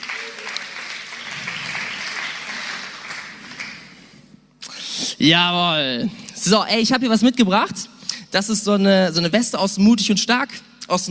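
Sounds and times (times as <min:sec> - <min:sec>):
audience applause: 0:00.0 - 0:04.0
speech: 0:05.2 - 0:11.1.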